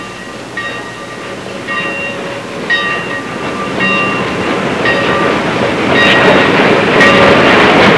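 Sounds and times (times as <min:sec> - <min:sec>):
train: 0:00.0 - 0:07.9.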